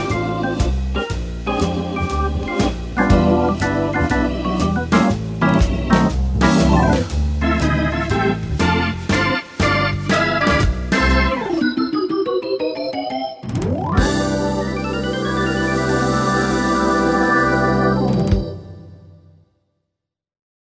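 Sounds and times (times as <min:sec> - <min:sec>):
traditional organ playing: 0:00.0 - 0:19.0.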